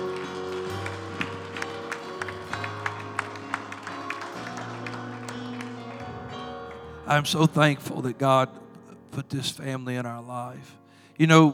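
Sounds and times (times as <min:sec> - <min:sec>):
audience hand clapping: 0:00.0 - 0:08.2
speech: 0:07.1 - 0:08.6, 0:09.2 - 0:11.5.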